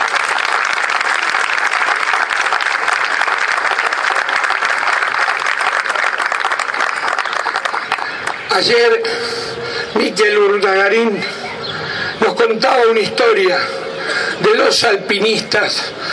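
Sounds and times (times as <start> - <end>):
audience applause: 0.0 - 8.5
speech: 8.6 - 11.4, 12.4 - 13.8, 14.4 - 16.0.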